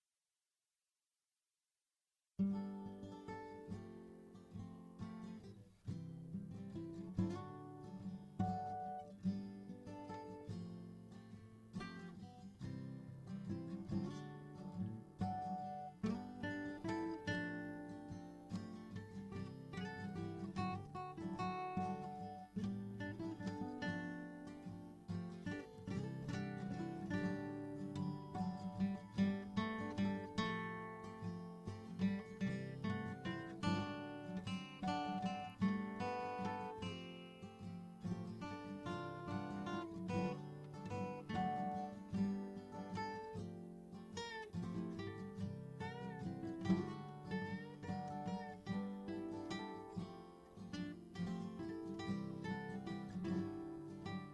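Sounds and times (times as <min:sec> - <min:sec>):
music: 0:02.4 - 0:54.3.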